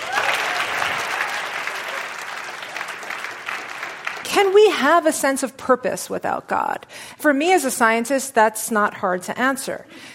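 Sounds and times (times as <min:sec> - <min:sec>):
audience applause welcoming a cognitive neuroscientist in a debate: 0:00.0 - 0:04.5
speech: 0:04.3 - 0:10.1.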